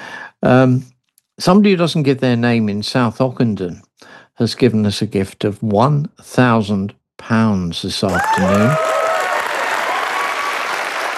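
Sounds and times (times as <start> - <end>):
speech: 0.4 - 9.0
crowd applause at a charity fundraising appeal: 8.1 - 11.1.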